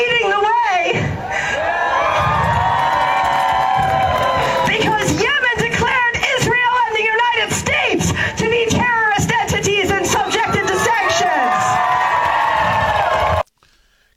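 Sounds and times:
crowd cheering and shouting: 0:00.1 - 0:13.5.

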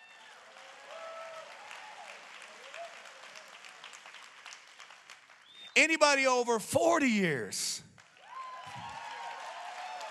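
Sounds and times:
audience applause: 0:00.0 - 0:06.3, 0:08.0 - 0:10.0
voices and whoops: 0:00.1 - 0:03.2, 0:08.2 - 0:10.0
speech: 0:05.8 - 0:07.9.

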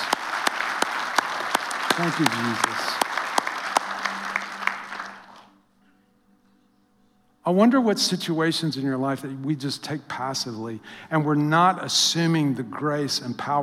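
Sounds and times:
audience applause: 0:00.0 - 0:05.5
speech: 0:02.0 - 0:03.0, 0:07.4 - 0:13.6.

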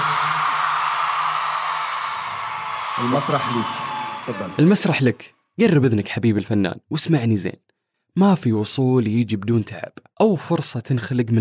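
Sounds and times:
large audience applause: 0:00.0 - 0:05.1
speech: 0:03.0 - 0:11.3.

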